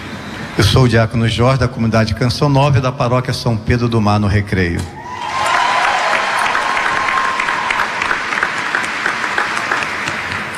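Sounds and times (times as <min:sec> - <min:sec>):
speech: 0:00.6 - 0:05.4
audience applause welcoming a speaker: 0:05.1 - 0:10.5.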